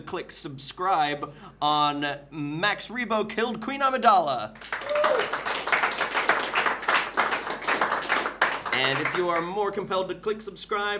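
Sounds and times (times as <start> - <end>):
speech: 0.1 - 5.4, 8.8 - 10.9
audience clapping: 4.6 - 9.7
high whoop: 4.8 - 5.6.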